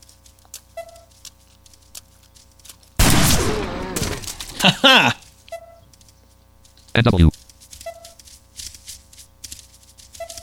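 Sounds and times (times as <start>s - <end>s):
sniper rifle gunshots in a video game: 3.0s - 4.8s
laughter: 4.5s - 5.2s
speech: 4.6s - 5.2s, 7.0s - 7.3s.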